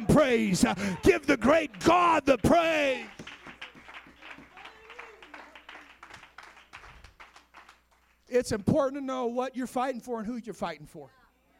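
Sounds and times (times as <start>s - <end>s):
speech: 0.2s - 3.2s, 8.3s - 11.2s
audience clapping hands: 0.6s - 8.7s.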